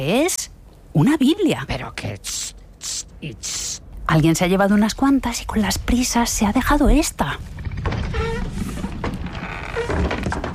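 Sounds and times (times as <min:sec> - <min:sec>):
speech: 0:00.0 - 0:00.4, 0:01.0 - 0:07.6
low continuous rumble: 0:03.8 - 0:10.5
heavy mechanical thunks: 0:07.4 - 0:10.5
secret hidden door grinding open: 0:07.4 - 0:10.5.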